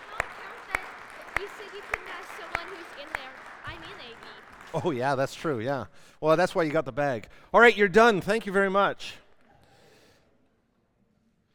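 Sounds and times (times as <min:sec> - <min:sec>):
slow applause: 0:00.0 - 0:05.6
speech: 0:01.7 - 0:09.2.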